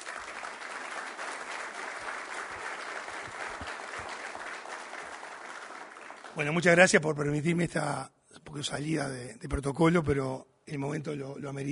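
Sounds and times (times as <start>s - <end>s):
audience applause: 0.0s - 6.7s
speech: 6.4s - 11.6s.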